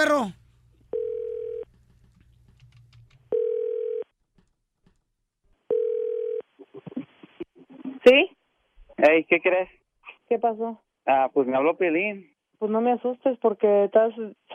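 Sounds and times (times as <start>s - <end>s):
speech: 0.0s - 0.4s, 8.0s - 8.4s, 9.0s - 14.5s
telephone ringback tone while calling: 0.9s - 1.6s, 3.3s - 4.0s, 5.7s - 6.4s.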